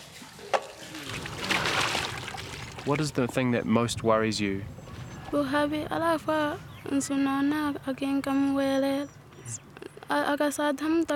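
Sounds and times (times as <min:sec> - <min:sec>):
water sloshing and trickling as it is drawn from a well: 0:00.0 - 0:03.6
water splashing in a well: 0:00.4 - 0:03.5
speech: 0:02.8 - 0:11.1.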